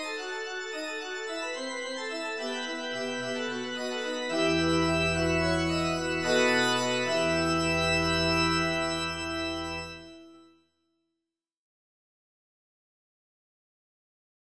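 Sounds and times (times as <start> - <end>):
organ prelude and fugue in C: 0.0 - 10.5.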